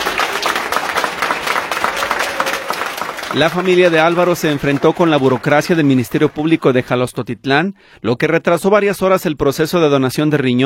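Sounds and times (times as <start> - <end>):
hospital staff applauding: 0.0 - 7.1
speech: 3.4 - 10.6.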